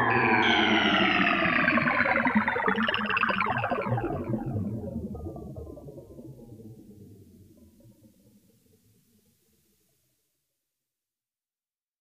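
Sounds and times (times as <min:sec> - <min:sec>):
fm blips: 0:00.1 - 0:08.1.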